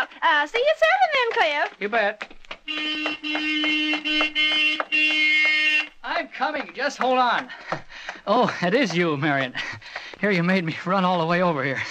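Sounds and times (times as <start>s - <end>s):
speech: 0.2s - 7.6s, 8.2s - 11.9s
car horn honking: 2.6s - 7.4s.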